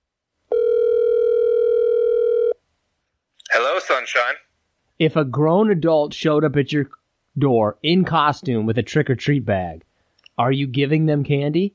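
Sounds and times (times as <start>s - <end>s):
telephone call ringing tone: 0.5s - 2.6s
speech: 4.0s - 11.7s.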